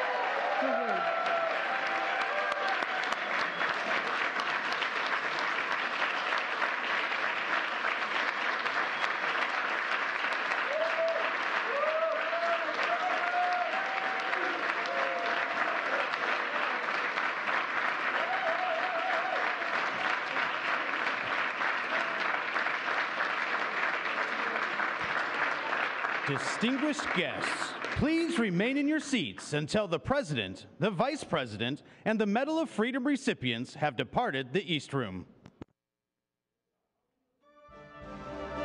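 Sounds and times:
audience applause: 0.0s - 28.8s
speech: 0.6s - 1.2s, 26.3s - 35.4s.

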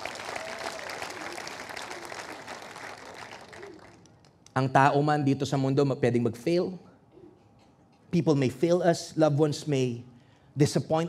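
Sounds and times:
church congregation applause during a Sunday sermon: 0.0s - 4.1s
speech: 4.6s - 6.9s, 8.1s - 11.0s.

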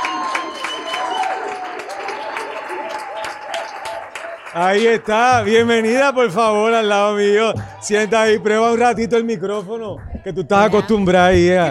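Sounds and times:
cheering and whoops: 0.0s - 4.4s
audience applause: 0.0s - 8.0s
speech: 4.5s - 11.6s.

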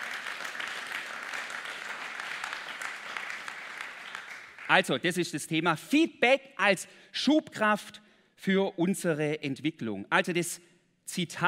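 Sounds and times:
audience applause: 0.0s - 4.7s
speech: 4.7s - 11.4s.

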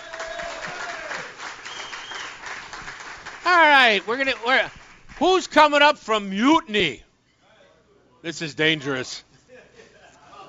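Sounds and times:
audience applause: 0.0s - 5.4s
speech: 3.5s - 7.0s, 8.2s - 9.3s.

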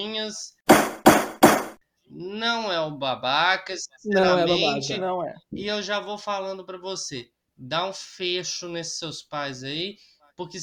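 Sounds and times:
speech: 0.2s - 0.8s, 2.1s - 10.6s
knocks on a surface: 0.7s - 1.8s.

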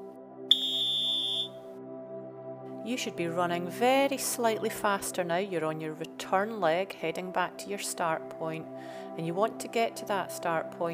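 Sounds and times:
shrill whistle blast during running drill: 0.5s - 1.6s
speech: 2.8s - 10.9s.

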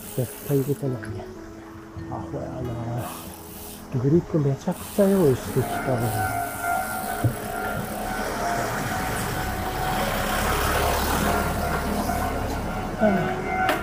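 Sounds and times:
speech: 0.2s - 6.6s, 13.0s - 13.4s
car driving past on narrow street: 5.7s - 13.8s.

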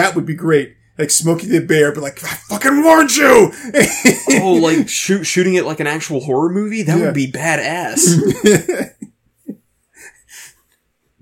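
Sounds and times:
speech: 0.1s - 9.0s
laughter: 3.6s - 5.0s, 7.9s - 9.1s
person sneezing: 8.0s - 8.4s.

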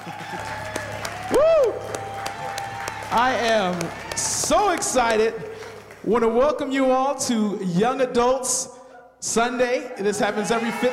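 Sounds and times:
person whooping: 0.0s - 3.2s
audience applause: 0.0s - 6.4s
speech: 0.1s - 0.7s, 3.1s - 10.9s.

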